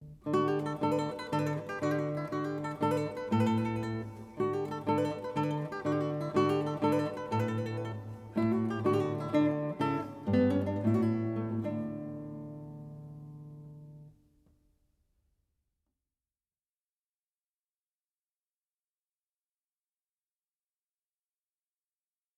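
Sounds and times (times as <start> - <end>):
folk songs on guitar: 0.0 - 14.4.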